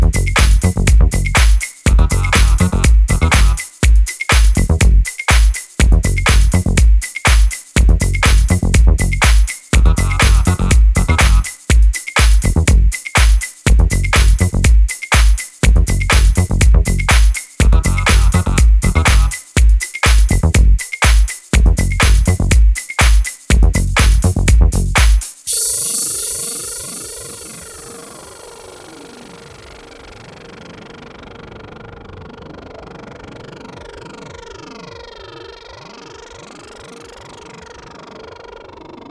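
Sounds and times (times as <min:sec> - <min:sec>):
dub mix music: 0:00.0 - 0:29.2.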